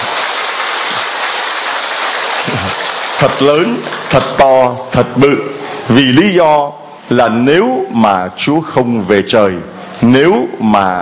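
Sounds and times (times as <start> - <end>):
loud audience applause: 0.0 - 4.4
speech: 2.4 - 11.0.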